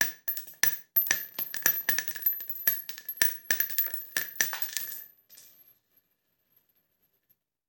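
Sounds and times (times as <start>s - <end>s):
bullet shell: 0.0s - 5.6s.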